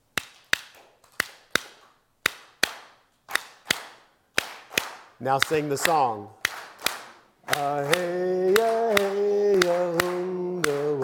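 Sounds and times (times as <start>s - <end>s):
elderberry wood clapper stick keeping rhythm: 0.1s - 11.0s
speech: 5.2s - 6.4s, 7.6s - 10.0s.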